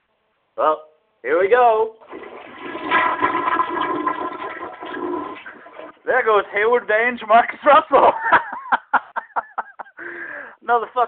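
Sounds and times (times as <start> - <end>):
speech: 0.6 - 2.2, 6.1 - 8.4, 10.7 - 11.0
toilet flushing: 2.0 - 6.1
laughter: 7.9 - 10.0.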